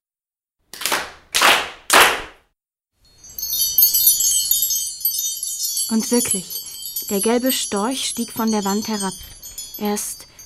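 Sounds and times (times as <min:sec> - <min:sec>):
group clapping hands: 0:00.7 - 0:02.4
speech: 0:05.9 - 0:10.4.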